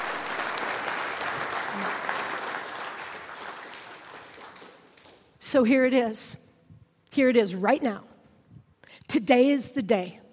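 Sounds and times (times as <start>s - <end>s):
audience clapping: 0.0s - 5.4s
speech: 5.5s - 6.4s, 7.2s - 8.1s, 9.1s - 10.2s.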